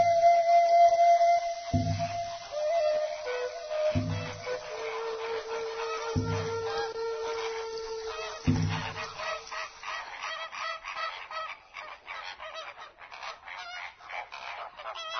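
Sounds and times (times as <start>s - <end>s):
flamingos honking as they take flight: 0.0s - 11.6s.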